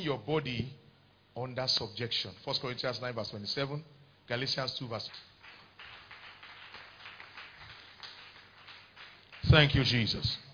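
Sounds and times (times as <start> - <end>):
speech: 0.0 - 0.8, 1.4 - 5.3, 9.5 - 10.5
audience clapping: 4.9 - 10.5.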